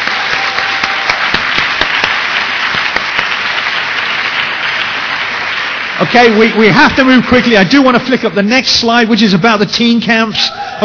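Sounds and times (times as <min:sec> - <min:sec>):
audience round of applause: 0:00.0 - 0:08.0
speech: 0:06.0 - 0:10.8.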